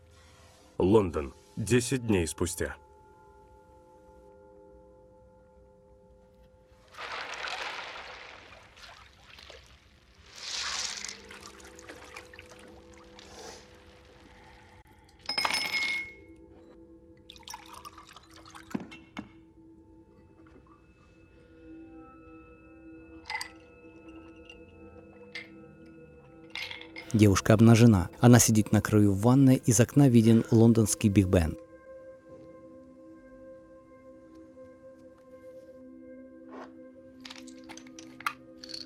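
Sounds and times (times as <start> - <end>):
speech: 0.8 - 2.8, 27.2 - 31.6
vodka poured from a bottle into a glass: 6.9 - 14.6, 17.3 - 18.8
glass clinking: 15.2 - 16.4, 23.2 - 27.4, 37.2 - 38.8.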